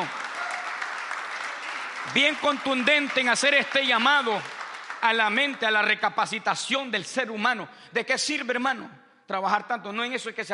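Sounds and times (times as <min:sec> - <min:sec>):
audience applause: 0:00.0 - 0:05.7
speech: 0:02.0 - 0:10.5.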